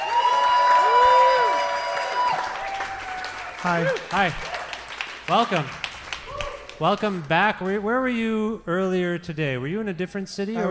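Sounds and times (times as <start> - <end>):
cheering voices and whoops: 0.0 - 4.2, 6.3 - 6.7
audience applause: 0.0 - 7.8
speech: 3.6 - 4.6, 5.3 - 5.8, 6.8 - 10.6.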